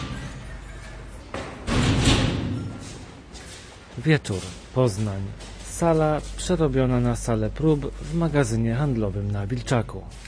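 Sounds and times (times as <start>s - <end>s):
massive door being opened: 1.5s - 3.1s
speech: 4.0s - 10.2s.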